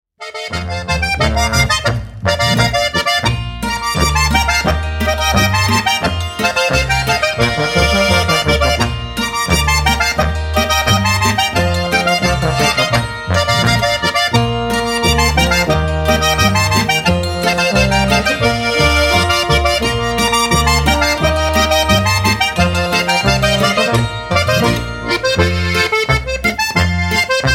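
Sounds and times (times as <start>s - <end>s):
Bavarian boarischer folk dance music: 0.2s - 27.5s.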